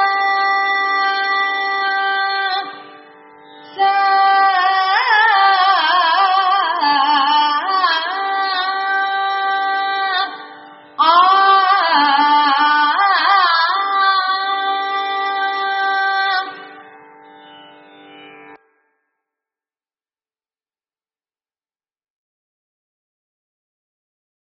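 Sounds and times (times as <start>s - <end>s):
kaarvai carnatic music: 0.0s - 19.0s.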